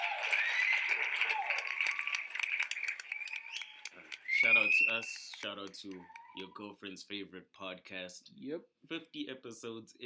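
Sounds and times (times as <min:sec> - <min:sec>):
round of applause: 0:00.0 - 0:06.7
speech: 0:04.4 - 0:10.0.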